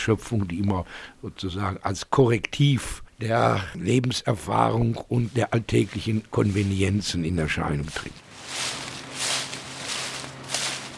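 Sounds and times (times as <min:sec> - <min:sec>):
speech: 0:00.0 - 0:08.8
low steady hum: 0:00.0 - 0:10.9
footsteps crossing open country through rustling leaves: 0:05.0 - 0:10.9.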